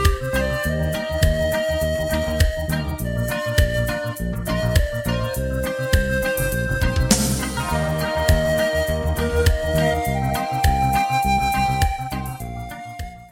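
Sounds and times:
ocarina solo: 0:00.0 - 0:13.3.

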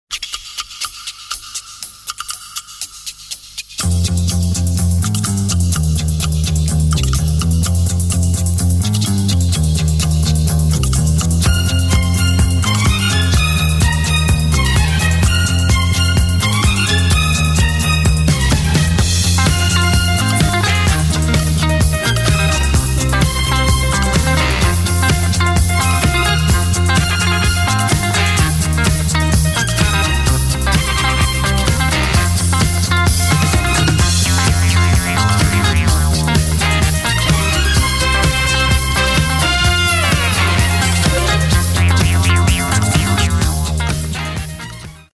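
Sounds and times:
disco music: 0:01.6 - 0:45.1.

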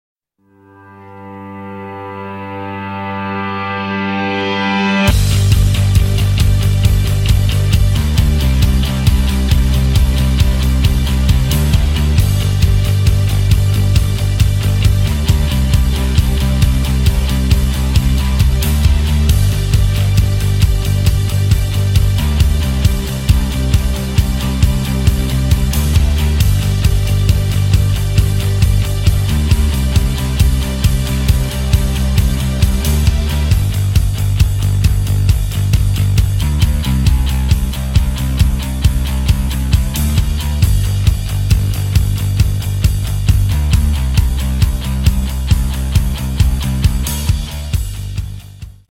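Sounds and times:
instrumental music: 0:00.4 - 0:48.8.

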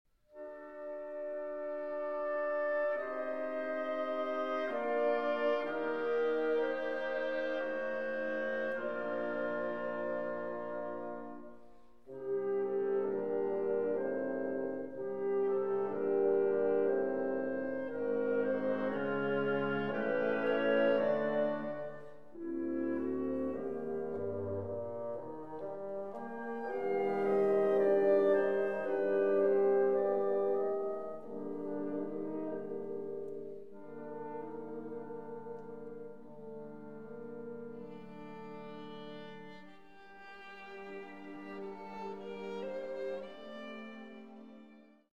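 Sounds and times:
violin and orchestra: 0:00.3 - 0:45.1.

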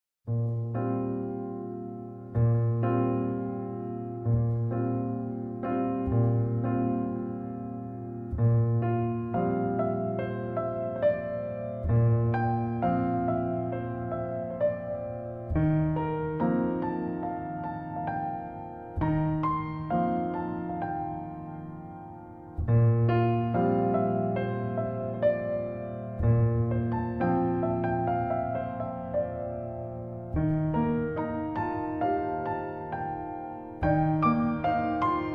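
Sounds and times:
piano: 0:00.3 - 0:35.3.

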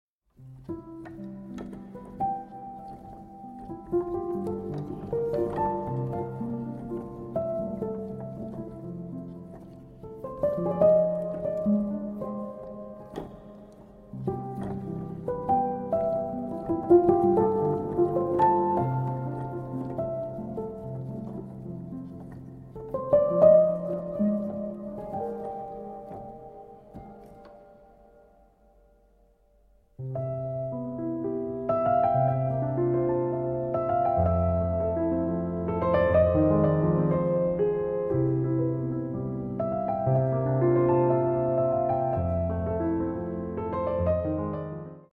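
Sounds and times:
solo piano: 0:00.3 - 0:45.1.

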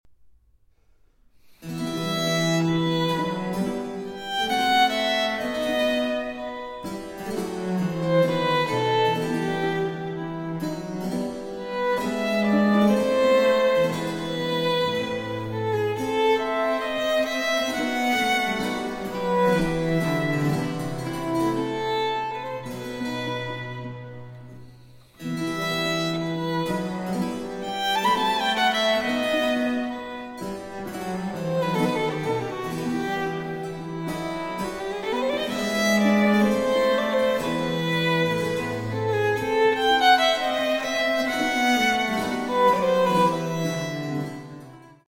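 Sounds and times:
violin and continuo largo in E minor: 0:01.4 - 0:45.0.

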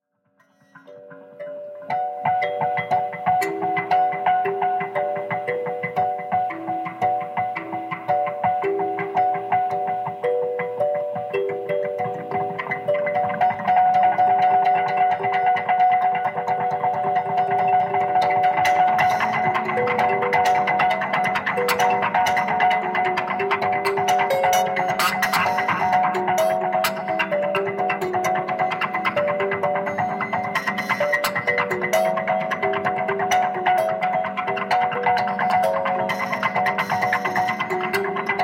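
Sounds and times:
kalimba: 0:00.4 - 0:38.4.

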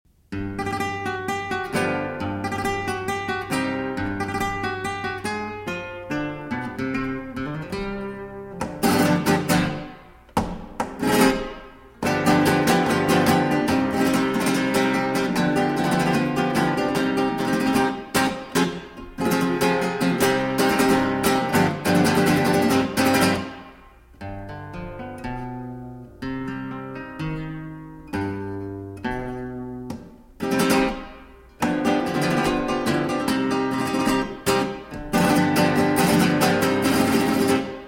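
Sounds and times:
flamenco farruca and rumba music: 0:00.3 - 0:37.8.

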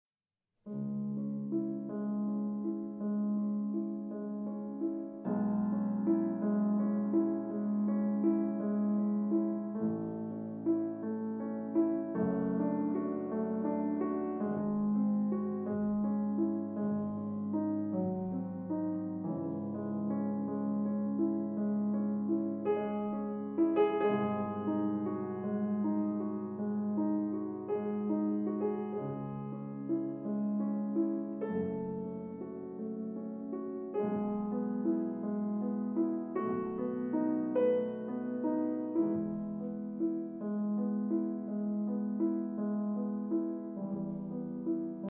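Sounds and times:
piano sonata: 0:00.6 - 0:45.0.

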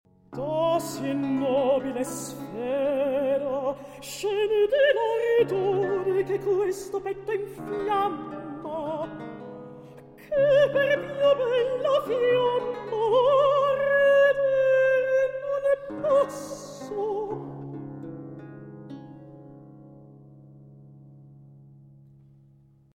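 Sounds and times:
recitative singing: 0:00.4 - 0:09.2, 0:10.2 - 0:17.5.

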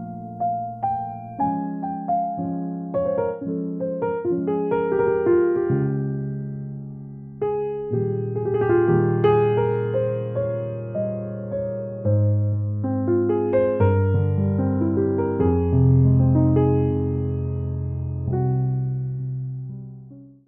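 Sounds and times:
chill cosy instrumental jazz piano: 0:00.0 - 0:20.4.

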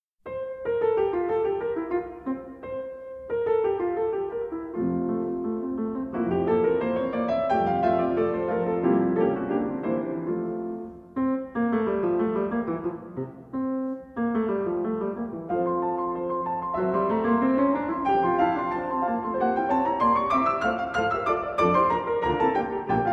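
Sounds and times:
piano sonata played on two pianos: 0:00.2 - 0:23.1.

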